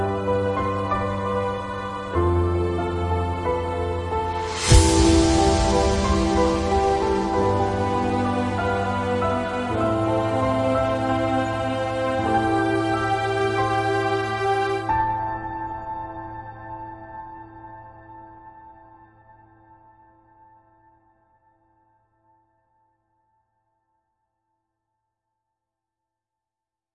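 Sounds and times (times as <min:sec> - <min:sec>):
epic motivational music: 0:00.0 - 0:15.3.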